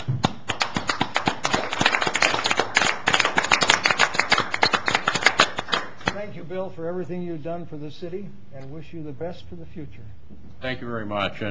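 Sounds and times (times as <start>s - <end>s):
room full of people clapping in a round of applause: 0.0s - 6.2s
speech: 6.5s - 11.5s.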